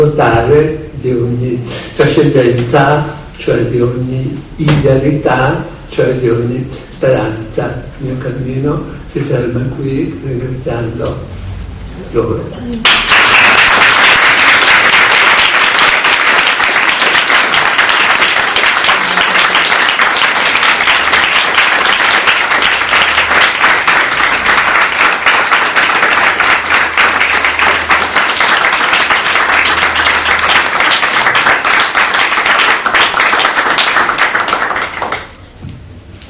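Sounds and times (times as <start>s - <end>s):
speech: 0.0s - 11.4s, 12.0s - 13.1s
long audience applause: 12.8s - 35.4s.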